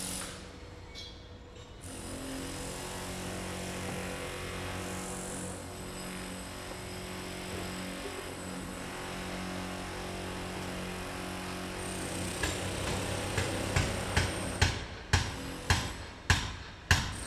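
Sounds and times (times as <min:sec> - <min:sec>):
construction site ambience: 0:00.0 - 0:17.2.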